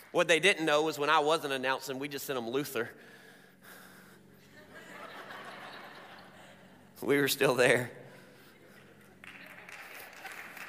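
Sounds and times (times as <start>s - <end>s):
speech: 0.1s - 3.2s, 7.0s - 8.0s
laughter: 4.4s - 7.0s, 8.5s - 10.6s
audience applause: 8.7s - 10.6s.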